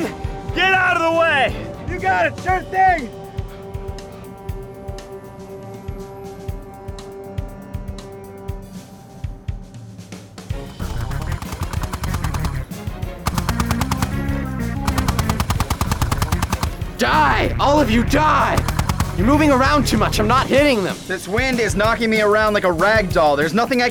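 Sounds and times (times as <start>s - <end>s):
speech: 0.1s - 3.2s, 17.0s - 23.8s
gunfire from a tripod-mounted gun: 10.8s - 17.1s, 18.4s - 19.8s.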